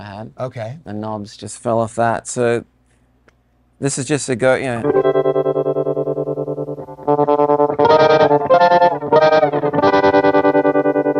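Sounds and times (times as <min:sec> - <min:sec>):
speech: 0:00.0 - 0:02.7, 0:03.8 - 0:05.2
electric guitar chords pulsing through a tremolo pedal: 0:04.8 - 0:11.1.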